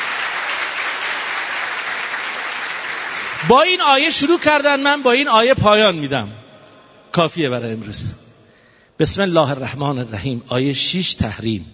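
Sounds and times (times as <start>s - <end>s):
audience applause at a lecture: 0.0s - 3.8s
speech: 3.4s - 6.4s, 7.2s - 8.2s, 9.0s - 11.7s.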